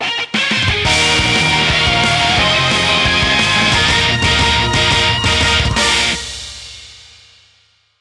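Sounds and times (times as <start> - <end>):
victory theme music: 0.8 - 6.9.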